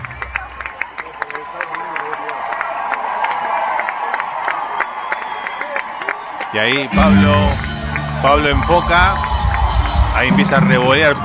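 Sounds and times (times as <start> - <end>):
sharp claps in a crowd: 0.0 - 10.8
large crowd shouting and cheering: 0.0 - 11.2
whistles in a crowd: 4.7 - 6.2
speech: 6.5 - 9.3, 10.2 - 11.2.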